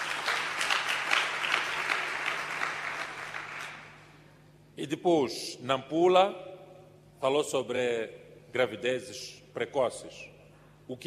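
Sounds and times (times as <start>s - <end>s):
audience applause: 0.0s - 3.9s
speech: 4.8s - 6.5s, 7.2s - 10.3s, 10.9s - 11.0s.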